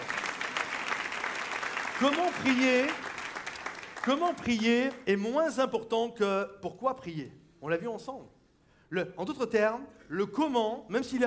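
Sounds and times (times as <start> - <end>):
audience applauding: 0.0 - 5.0
speech: 2.0 - 3.1, 4.0 - 11.2.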